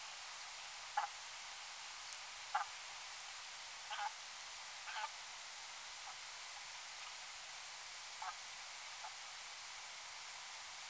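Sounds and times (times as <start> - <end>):
continuous hiss: 0.0 - 10.8
brant honking: 2.5 - 2.7, 3.9 - 4.2, 4.8 - 5.2, 8.2 - 8.4.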